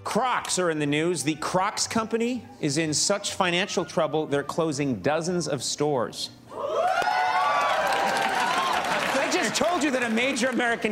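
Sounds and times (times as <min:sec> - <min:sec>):
speech: 0:00.1 - 0:06.8, 0:09.5 - 0:10.9
late-night talk show studio audience cheering and whooping: 0:06.5 - 0:10.4.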